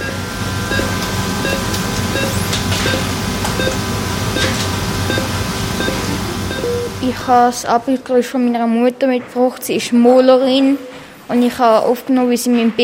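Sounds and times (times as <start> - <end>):
hospital infusion pump beeping: 0.0 - 7.6
constant noisy hum: 0.0 - 12.8
speech: 7.2 - 12.8.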